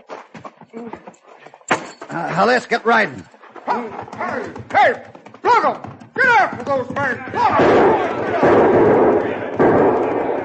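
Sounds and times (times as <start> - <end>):
speech: 0.7 - 1.3, 2.1 - 9.0
gunshots during an Old West shootout in a town: 7.4 - 10.4.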